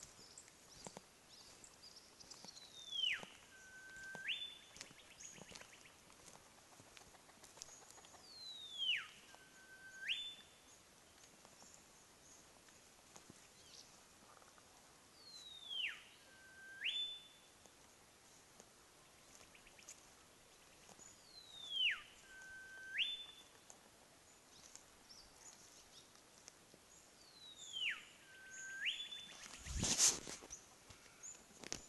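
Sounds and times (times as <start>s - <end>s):
olive whistler calling: 0.0s - 10.8s, 15.2s - 17.5s, 20.8s - 23.6s, 27.2s - 31.5s.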